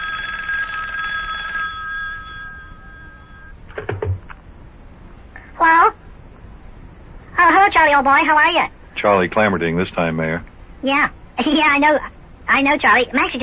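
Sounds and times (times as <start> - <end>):
old telephone bell ringing: 0.0 - 3.6
speech: 7.8 - 13.4.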